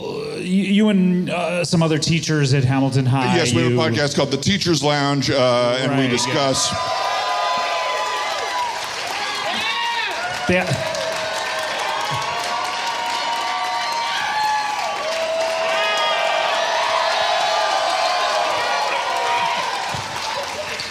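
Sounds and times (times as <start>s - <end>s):
speech: 0.4s - 7.1s, 10.5s - 10.9s
whoops and shouting voices: 5.8s - 20.8s
live audience applauding into a handheld microphone: 6.1s - 20.8s.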